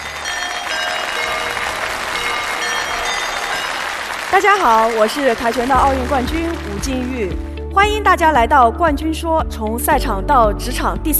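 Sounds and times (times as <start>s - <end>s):
audience applause: 0.0s - 7.6s
speech: 4.3s - 11.1s.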